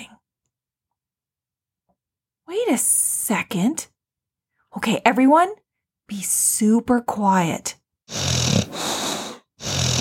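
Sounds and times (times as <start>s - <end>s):
speech: 2.5s - 3.9s, 4.7s - 8.3s
sleeping puppies snoring: 8.1s - 9.9s.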